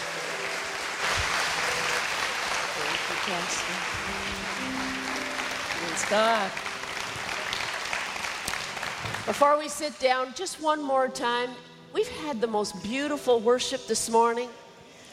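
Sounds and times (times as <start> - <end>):
audience applauding a reverend at a Jackson Mississippi worship gathering: 0.0 - 9.4
speech: 3.3 - 5.0, 5.9 - 6.7, 9.3 - 14.6.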